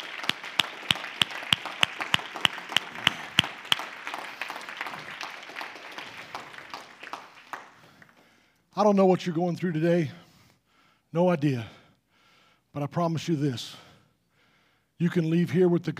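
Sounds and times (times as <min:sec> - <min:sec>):
audience clapping hands: 0:00.0 - 0:08.4
speech: 0:08.8 - 0:10.2, 0:11.1 - 0:11.8, 0:12.7 - 0:13.8, 0:15.0 - 0:15.9.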